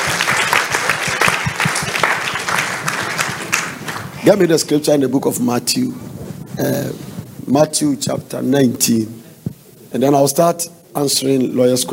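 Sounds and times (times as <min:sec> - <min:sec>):
audience applause: 0:00.0 - 0:04.2
speech: 0:04.2 - 0:09.2, 0:09.9 - 0:11.9.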